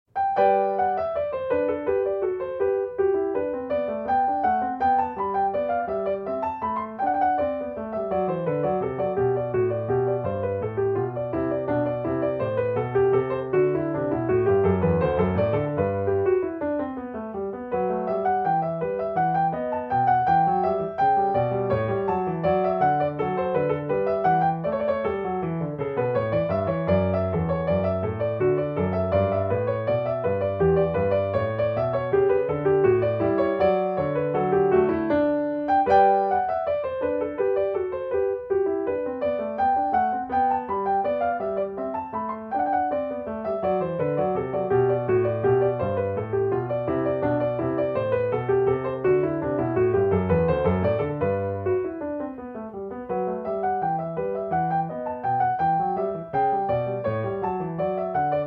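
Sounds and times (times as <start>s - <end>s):
baroque courante: 0.1s - 58.4s.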